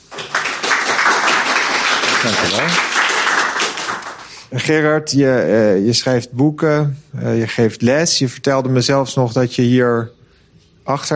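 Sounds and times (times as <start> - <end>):
audience applause: 0.0 - 4.4
speech: 2.2 - 3.0, 4.5 - 10.2, 10.9 - 11.1.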